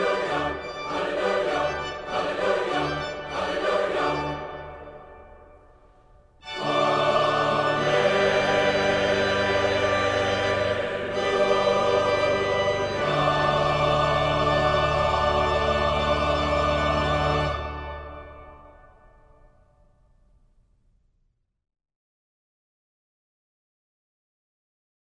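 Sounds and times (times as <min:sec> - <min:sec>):
choir singing: 0:00.0 - 0:05.5, 0:06.4 - 0:18.8.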